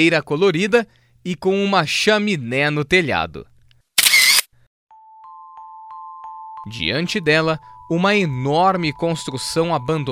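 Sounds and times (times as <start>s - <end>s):
speech: 0.0s - 3.5s, 6.6s - 10.1s
phone camera shutter click: 4.0s - 4.5s.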